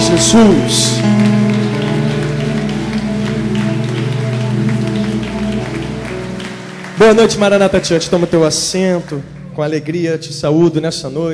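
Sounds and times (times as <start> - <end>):
audience applause: 0.0 - 9.9
speech: 0.1 - 1.4, 7.0 - 11.3.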